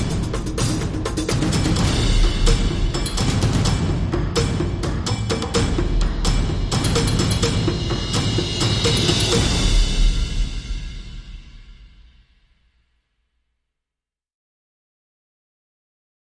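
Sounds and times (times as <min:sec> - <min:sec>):
drums and percussion: 0:00.0 - 0:13.0.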